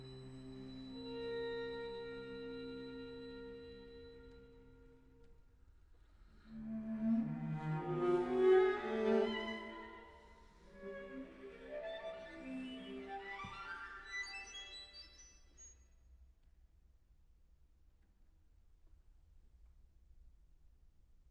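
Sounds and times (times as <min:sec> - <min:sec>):
string quartet: 0:00.0 - 0:04.9, 0:06.4 - 0:14.3.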